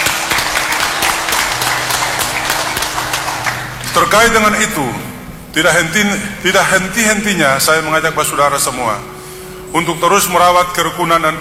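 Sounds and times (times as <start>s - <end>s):
audience applause: 0.0s - 5.2s
speech: 4.0s - 11.3s.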